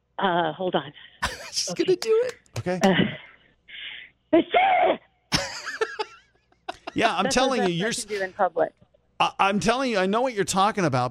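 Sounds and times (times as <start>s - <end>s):
speech: 0.2s - 3.2s, 4.3s - 5.0s, 7.0s - 11.0s
laughter: 1.2s - 3.3s, 5.3s - 8.4s
full-on sneeze: 4.4s - 5.0s.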